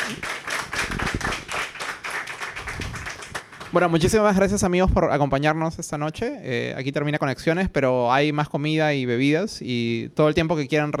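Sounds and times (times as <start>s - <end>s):
audience clapping: 0.0s - 4.4s
speech: 3.7s - 10.9s.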